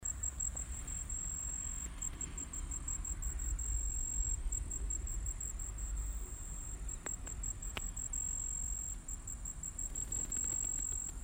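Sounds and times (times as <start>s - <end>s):
cricket chirping in a fast high pulsed trill: 0.0s - 11.2s.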